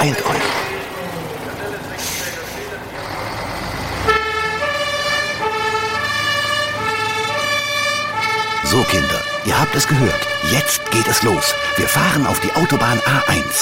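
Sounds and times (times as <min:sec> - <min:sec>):
speech: 0:00.0 - 0:00.6, 0:08.7 - 0:13.6
fire engine engine rumbling: 0:00.0 - 0:13.6
fire engine two-tone siren: 0:04.0 - 0:13.6.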